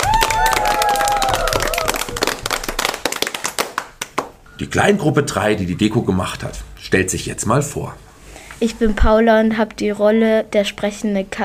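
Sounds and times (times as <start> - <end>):
people whooping and cheering: 0.0 - 2.5
room full of people applauding: 0.0 - 4.4
speech: 4.6 - 11.4.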